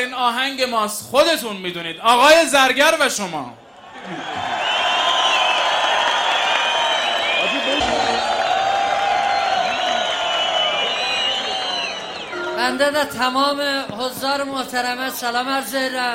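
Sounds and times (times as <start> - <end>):
speech: 0.0 - 4.4, 12.6 - 16.1
concert audience clapping: 3.9 - 12.4
concert crowd cheering and whooping: 3.9 - 12.6.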